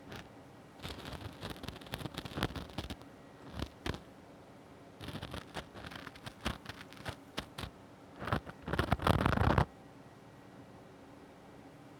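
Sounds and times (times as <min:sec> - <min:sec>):
ear cleaning on the left side: 0:00.0 - 0:04.0, 0:05.0 - 0:09.7.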